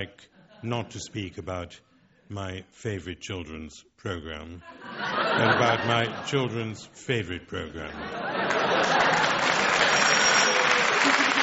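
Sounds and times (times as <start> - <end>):
speech: 0.0 - 9.3
laughter: 4.6 - 6.9, 7.5 - 11.4
audience applause: 8.3 - 11.4.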